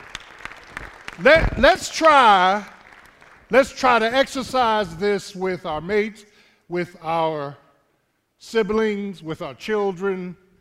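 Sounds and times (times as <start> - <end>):
church congregation hand claps: 0.0 - 4.4
speech: 1.2 - 2.8, 3.5 - 7.6, 8.4 - 10.4.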